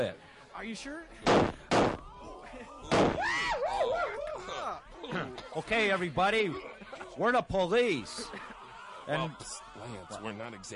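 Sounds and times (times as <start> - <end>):
speech: 0.0 - 10.7
gunshots fired over a group of people's heads: 1.2 - 2.0, 2.9 - 3.2
laughter: 2.2 - 2.9, 3.7 - 10.7.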